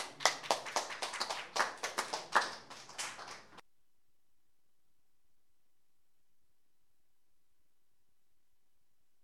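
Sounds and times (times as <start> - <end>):
sparse audience applause at a live music show: 0.0 - 3.6.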